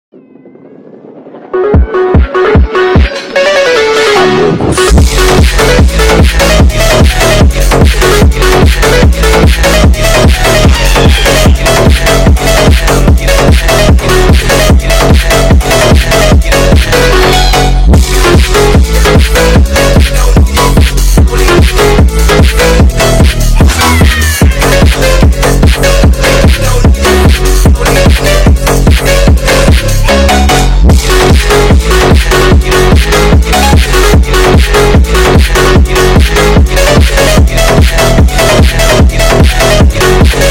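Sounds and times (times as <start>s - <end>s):
sped-up phonk remix: 1.5s - 40.4s.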